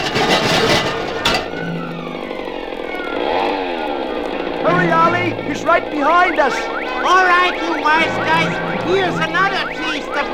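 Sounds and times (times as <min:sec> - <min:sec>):
small motor scooter engine running: 0:00.4 - 0:06.0
speech: 0:04.8 - 0:10.3.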